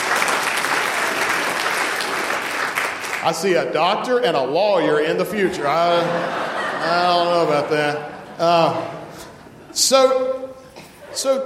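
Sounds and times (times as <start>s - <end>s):
audience applause: 0.0s - 3.5s
speech: 3.2s - 9.0s, 9.8s - 10.4s, 11.2s - 11.4s
laughter: 5.3s - 10.2s, 10.8s - 11.4s.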